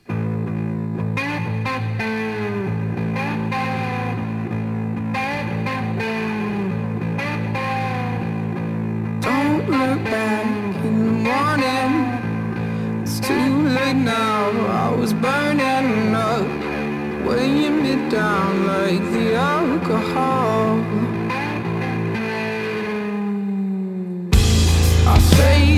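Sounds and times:
song with bass, chords and gliding melodic line: 0.0 - 23.2, 24.3 - 25.7.

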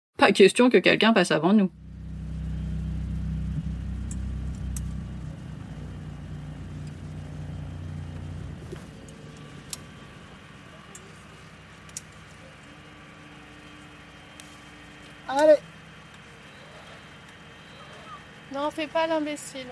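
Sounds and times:
speech: 0.2 - 1.8, 18.8 - 19.7
boat engine rumbling: 0.8 - 19.7.

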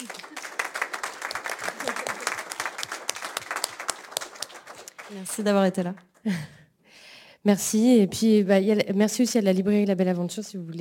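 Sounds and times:
audience applause: 0.0 - 5.8
laughter: 1.6 - 2.5
speech: 5.1 - 6.6, 7.4 - 10.7.

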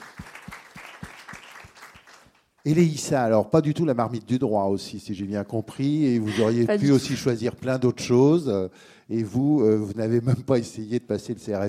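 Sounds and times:
audience clapping: 0.0 - 2.8
speech: 2.6 - 11.6.

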